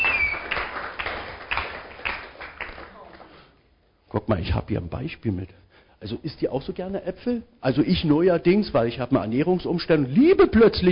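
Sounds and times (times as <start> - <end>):
group clapping in a steady rhythm: 0.0 - 3.4
speech: 4.1 - 10.9.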